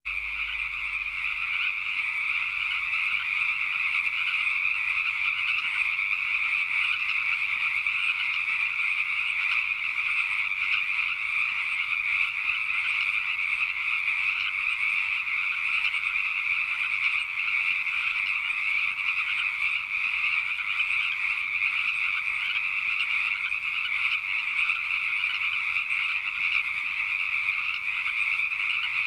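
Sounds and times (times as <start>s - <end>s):
frog chorus: 0.0s - 29.0s.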